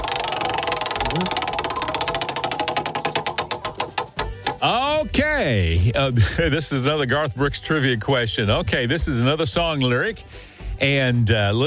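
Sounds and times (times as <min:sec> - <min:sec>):
country music trivia prize wheel ratchet clicking: 0:00.0 - 0:04.7
speech: 0:01.1 - 0:01.4, 0:04.6 - 0:11.6.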